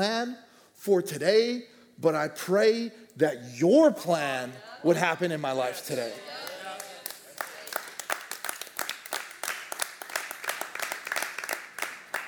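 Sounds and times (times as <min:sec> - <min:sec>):
speech: 0:00.0 - 0:06.5
small group clapping: 0:06.2 - 0:12.2.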